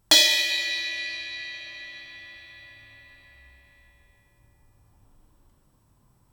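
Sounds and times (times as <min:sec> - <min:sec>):
crash cymbal bell hit: 0:00.1 - 0:04.0.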